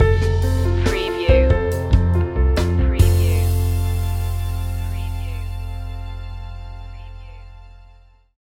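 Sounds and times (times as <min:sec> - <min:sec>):
acoustic mood stinger: 0:01.0 - 0:07.7.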